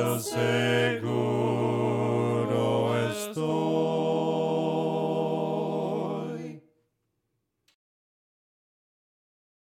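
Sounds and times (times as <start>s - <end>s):
voices singing hymns a cappella: 0.0s - 6.7s.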